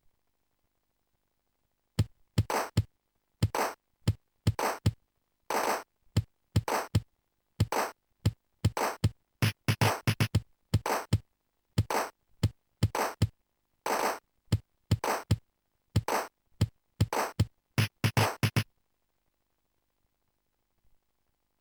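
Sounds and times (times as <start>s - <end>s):
drum rhythms: 2.4s - 5.8s, 6.6s - 7.9s, 8.7s - 11.2s, 11.8s - 13.3s, 13.9s - 15.4s, 16.0s - 16.3s, 17.0s - 18.6s.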